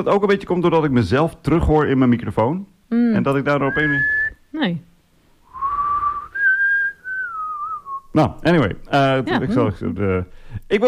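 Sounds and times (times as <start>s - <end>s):
speech: 0.0s - 4.9s, 8.2s - 10.8s
person whistling two long steady notes: 3.6s - 4.4s, 5.5s - 8.1s.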